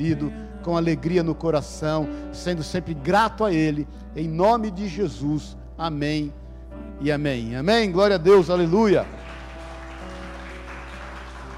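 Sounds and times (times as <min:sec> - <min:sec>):
speech: 0:00.0 - 0:06.4, 0:07.0 - 0:09.2
audience applauding: 0:08.6 - 0:11.5.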